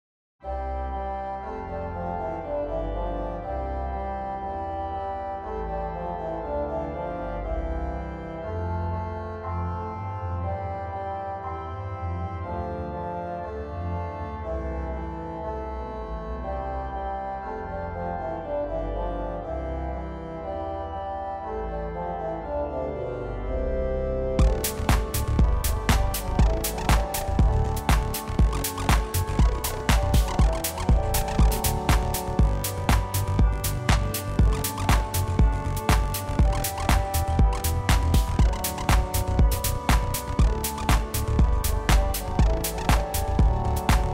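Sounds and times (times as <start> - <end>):
organ reeds playing: 0.5 - 44.1.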